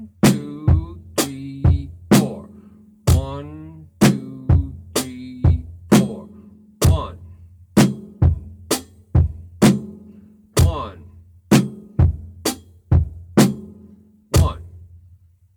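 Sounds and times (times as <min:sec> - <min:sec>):
drum beat: 0:00.0 - 0:02.5, 0:03.1 - 0:07.2, 0:07.8 - 0:10.0, 0:10.6 - 0:14.8
rhythm syllables spoken: 0:00.0 - 0:02.5, 0:03.1 - 0:07.2, 0:10.6 - 0:11.0, 0:14.4 - 0:14.6.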